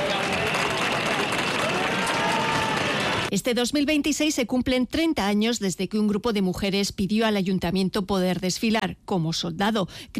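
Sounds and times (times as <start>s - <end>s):
whistling at the arrival of the general: 0.0s - 3.2s
applause at the arrival of the general: 0.0s - 3.3s
speech: 3.3s - 10.1s.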